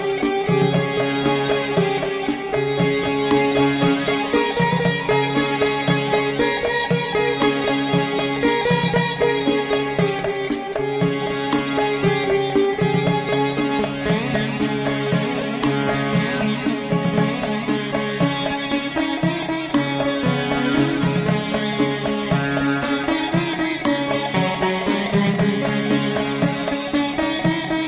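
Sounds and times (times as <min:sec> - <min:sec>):
electric sitar: 0:00.0 - 0:27.8.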